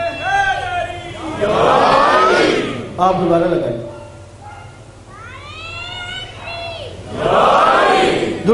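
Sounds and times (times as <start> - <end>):
crowd chanting a religious slogan: 0.2 - 3.0, 7.0 - 8.5
speech: 3.0 - 4.0.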